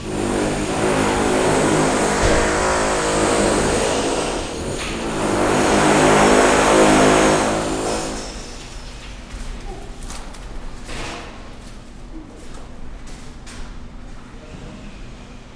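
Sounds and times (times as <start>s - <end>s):
heavy engine droning during footbridge renovation: 0.0s - 9.0s, 11.8s - 13.2s
low mechanical hum: 0.0s - 15.5s.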